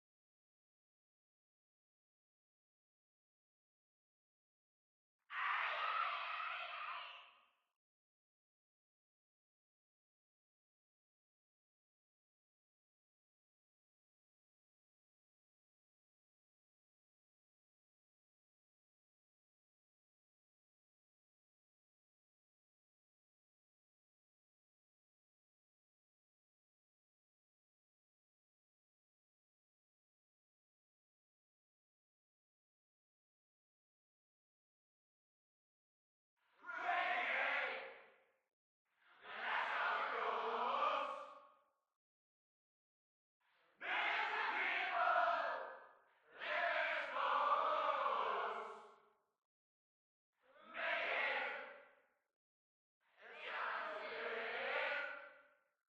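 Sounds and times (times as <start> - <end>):
crowd: 5.3 - 7.4, 36.6 - 38.0, 39.1 - 41.5, 43.8 - 49.0, 50.5 - 51.8, 53.1 - 55.3.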